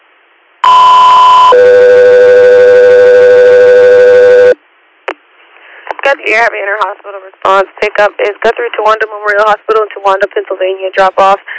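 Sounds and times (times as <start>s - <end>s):
radio dispatch alert tone: 0.6s - 4.6s
speech: 6.2s - 11.5s.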